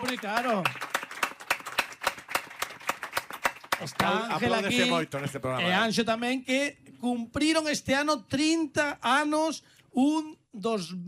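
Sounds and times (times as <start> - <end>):
applause: 0.0 - 5.4
speech: 0.1 - 0.8, 3.8 - 11.0.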